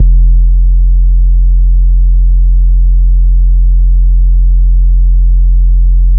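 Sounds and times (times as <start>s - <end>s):
sub bass: 0.0s - 6.1s.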